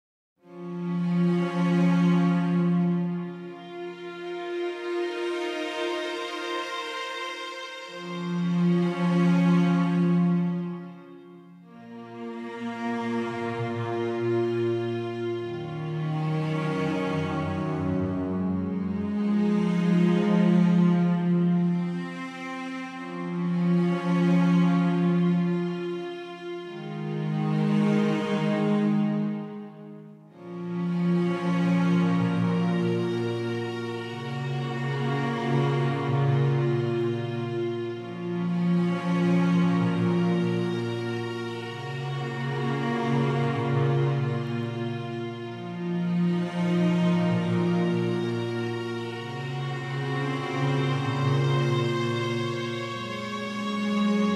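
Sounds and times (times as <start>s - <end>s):
Hyperion Strings Elements strings: 0.4s - 54.3s.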